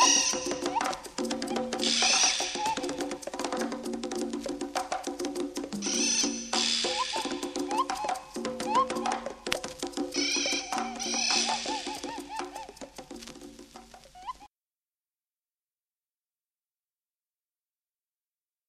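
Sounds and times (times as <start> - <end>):
jungle drums: 0.0 - 14.5.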